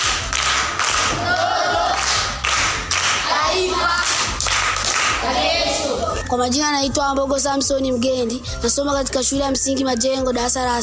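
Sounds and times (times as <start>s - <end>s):
schoolchildren in a primary school class clapping: 0.0s - 5.9s
children's voices: 3.2s - 4.2s, 5.2s - 7.5s
speech: 6.3s - 10.8s.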